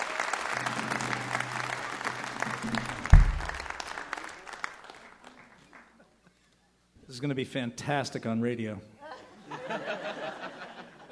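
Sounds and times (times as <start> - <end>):
audience applause for a lyricist at a live show: 0.0 - 6.0
speech: 7.2 - 9.0
laughter: 9.0 - 11.1.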